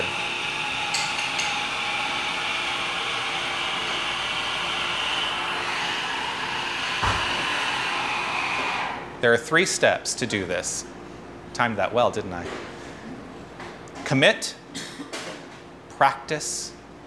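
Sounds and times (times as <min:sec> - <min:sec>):
espresso machine running: 0:00.0 - 0:09.1
speech: 0:09.2 - 0:11.0, 0:11.6 - 0:12.7, 0:14.1 - 0:14.6, 0:16.0 - 0:16.8.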